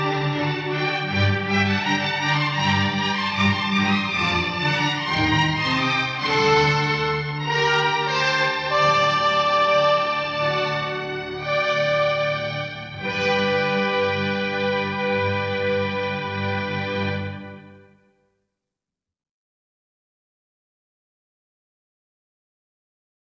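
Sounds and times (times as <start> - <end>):
flutes: 0.0 - 18.0
horns: 0.0 - 18.0
strings: 0.0 - 18.0.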